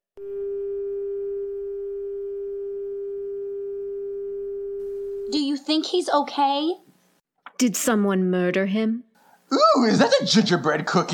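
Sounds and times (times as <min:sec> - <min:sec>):
landline dial tone sputtering: 0:00.2 - 0:05.2
speech: 0:05.3 - 0:06.8, 0:07.6 - 0:11.1.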